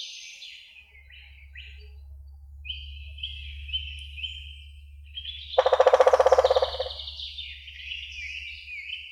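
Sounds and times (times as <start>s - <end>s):
woodpecker Picidae: 2.6s - 9.0s.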